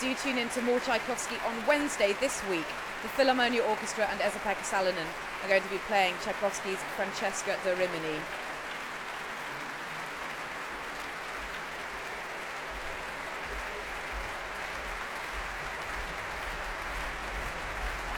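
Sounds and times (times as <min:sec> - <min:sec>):
large concert audience applauding: 0:00.0 - 0:18.1
speech: 0:00.2 - 0:08.4.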